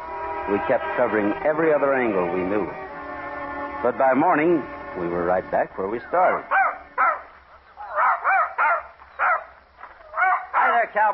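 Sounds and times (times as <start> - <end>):
speech: 0.5 - 2.9, 3.8 - 6.6, 10.9 - 11.1
dog barking: 6.5 - 10.9.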